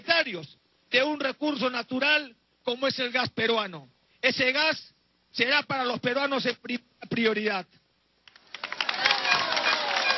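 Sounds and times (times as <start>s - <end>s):
speech: 0.3s - 7.8s
applause: 8.3s - 10.1s.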